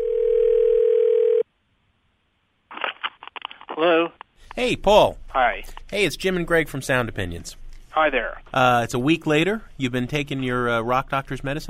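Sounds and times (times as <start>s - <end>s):
telephone dial tone: 0.0s - 1.4s
speech: 3.8s - 11.6s.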